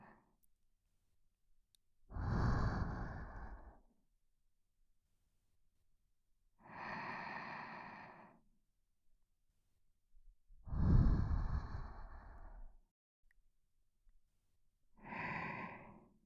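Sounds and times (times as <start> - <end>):
person breathing in sleep: 2.1 - 3.8, 6.6 - 8.4, 10.7 - 12.8, 15.0 - 16.2.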